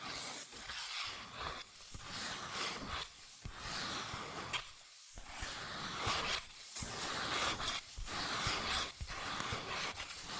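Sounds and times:
scratching and tracing on cardboard or paper: 0.0s - 10.3s.

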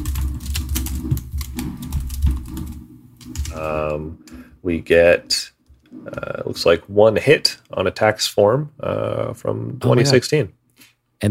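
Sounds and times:
typing a search on a computer keyboard: 0.0s - 4.0s
speech: 3.6s - 10.6s.

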